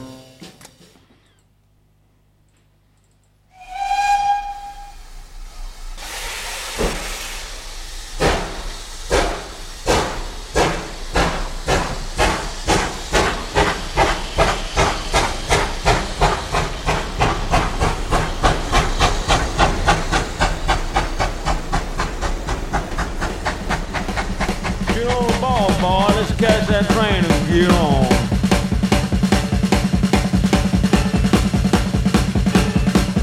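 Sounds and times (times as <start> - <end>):
steam train whistle at departure: 0.0 - 0.5, 3.5 - 17.1, 24.8 - 29.6, 30.2 - 33.2
burst of hissing steam: 3.5 - 33.2.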